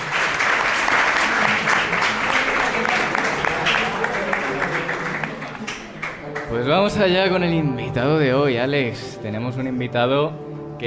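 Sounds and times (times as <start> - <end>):
crowd clapping: 0.0 - 7.2
speech: 6.7 - 10.8.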